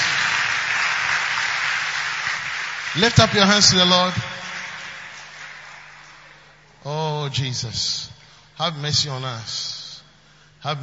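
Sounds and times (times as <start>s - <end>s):
audience clapping: 0.0s - 6.8s
speech: 3.0s - 4.2s, 7.3s - 9.8s, 10.6s - 10.8s.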